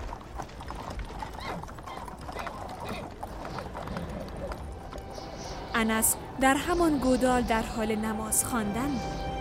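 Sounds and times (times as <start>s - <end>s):
horse hooves clip-clopping as a rider sets off: 0.0s - 6.8s
speech: 5.8s - 9.3s.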